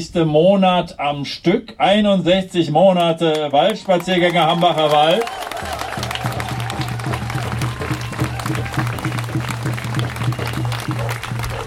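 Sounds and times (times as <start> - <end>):
speech: 0.0 - 5.8
crowd applauding: 3.3 - 11.6.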